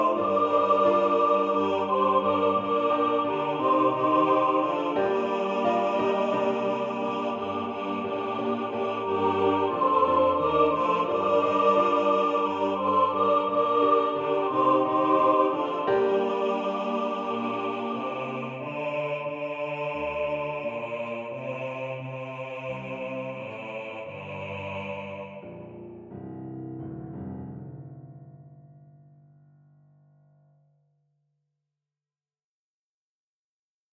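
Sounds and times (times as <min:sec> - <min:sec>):
meditation music: 0:00.0 - 0:25.4.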